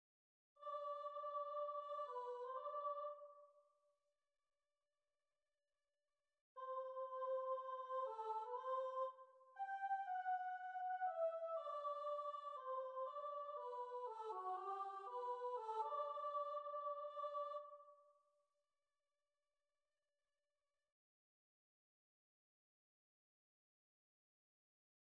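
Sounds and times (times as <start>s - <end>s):
soprano choir: 0.6s - 3.6s, 6.6s - 18.0s.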